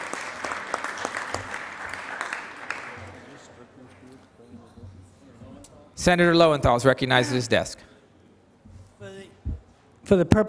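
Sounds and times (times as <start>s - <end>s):
applause: 0.0s - 3.6s
speech: 6.0s - 7.9s, 10.1s - 10.4s.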